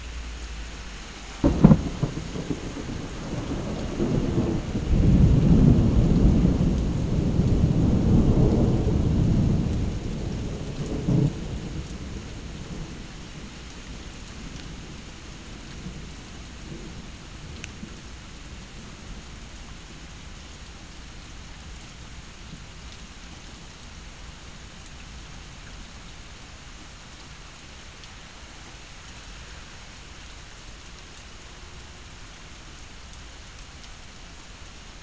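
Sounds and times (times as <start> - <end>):
thunderstorm: 1.4 - 19.2.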